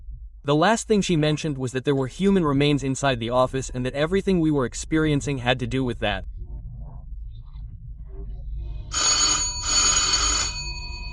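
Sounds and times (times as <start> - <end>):
speech: 0.5 - 6.3
doorbell ringing: 8.9 - 11.1.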